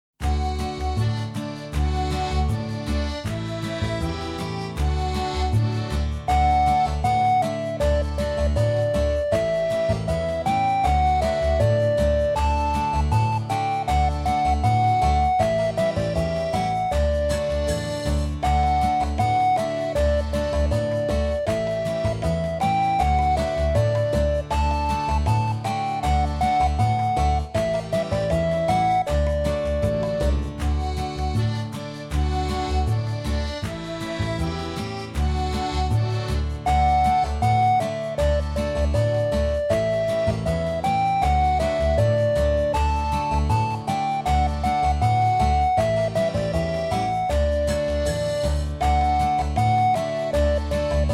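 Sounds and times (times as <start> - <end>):
melody: 0.2 - 51.1.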